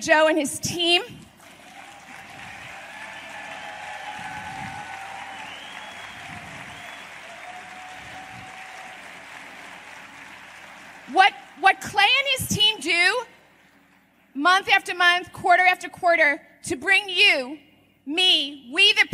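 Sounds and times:
speech: 0.0s - 1.2s, 11.1s - 13.3s, 14.4s - 19.1s
crowd applauding: 1.4s - 11.7s.

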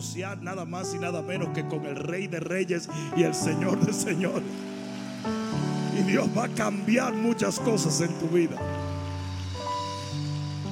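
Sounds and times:
speech: 0.0s - 5.5s, 6.1s - 8.9s
audience applause: 3.4s - 10.7s.

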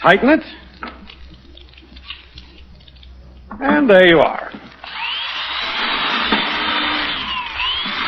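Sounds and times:
speech: 0.0s - 0.6s, 3.6s - 4.6s
electric drill boring through a board: 4.8s - 8.0s.

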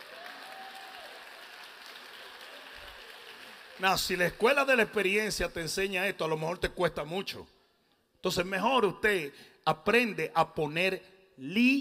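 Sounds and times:
few people applauding: 0.0s - 4.4s
speech: 3.8s - 7.6s, 8.2s - 11.7s.

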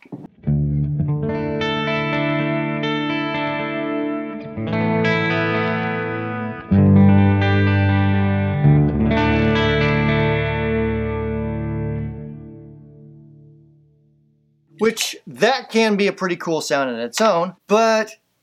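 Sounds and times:
guitar through chorus effect pedal: 0.1s - 14.8s
speech: 14.9s - 18.2s.

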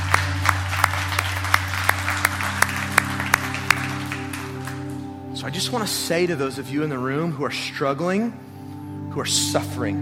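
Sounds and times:
scattered applause: 0.0s - 5.2s
audience clapping in rhythm: 0.0s - 5.4s
speech: 5.4s - 8.5s, 9.2s - 9.9s.

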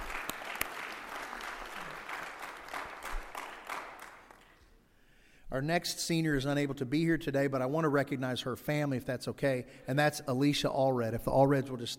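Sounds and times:
audience applause: 0.0s - 4.6s
speech: 5.5s - 11.9s.

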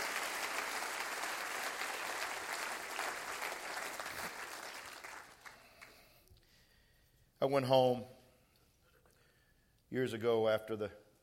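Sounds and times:
audience clapping hands: 0.0s - 6.2s
speech: 7.4s - 8.2s, 9.9s - 11.0s.

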